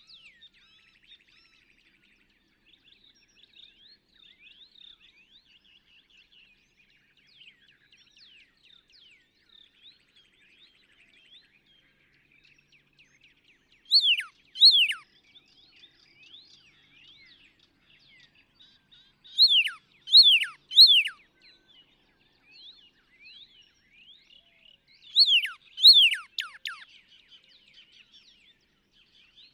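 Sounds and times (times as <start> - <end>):
Northern Cardinal: 2.6 - 29.5.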